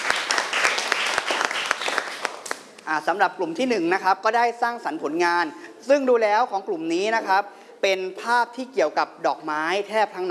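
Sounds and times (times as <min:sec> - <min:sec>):
audience applause: 0:00.0 - 0:02.6
speech: 0:02.9 - 0:10.3.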